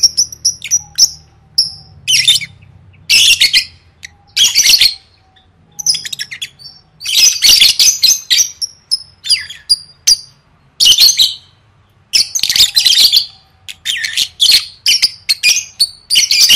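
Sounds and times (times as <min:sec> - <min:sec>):
lovebird squawks and whistles: 0:00.0 - 0:11.5, 0:12.1 - 0:16.5.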